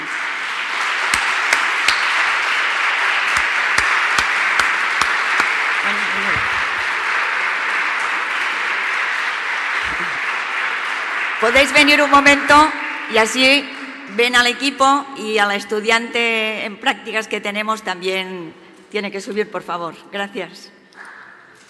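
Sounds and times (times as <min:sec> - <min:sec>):
audience applause: 0:00.0 - 0:12.6
speech: 0:11.5 - 0:20.8.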